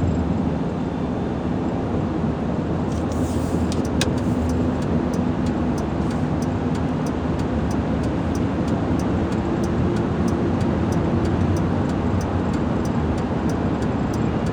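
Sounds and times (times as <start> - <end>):
highway road noise in a Ford F-150 pickup truck in Arizona: 0.0 - 14.5
Ford F-150 turn signal clicking: 2.9 - 14.5.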